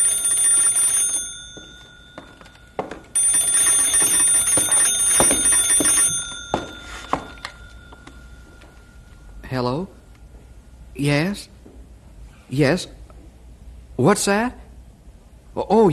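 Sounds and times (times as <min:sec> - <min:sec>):
telephone ringing: 0:00.0 - 0:09.2
speech: 0:09.5 - 0:10.0, 0:11.0 - 0:11.6, 0:12.5 - 0:13.0, 0:14.0 - 0:14.6, 0:15.6 - 0:15.9.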